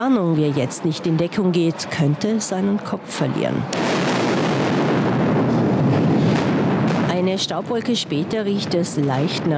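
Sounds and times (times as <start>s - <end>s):
speech: 0.0s - 4.1s, 7.4s - 9.5s
tunnel blasting explosion: 3.7s - 7.7s.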